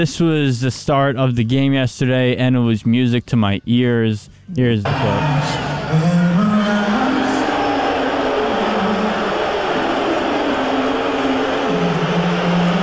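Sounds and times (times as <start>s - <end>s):
speech: 0.0s - 6.2s
fans booing during the national anthem: 4.9s - 12.8s.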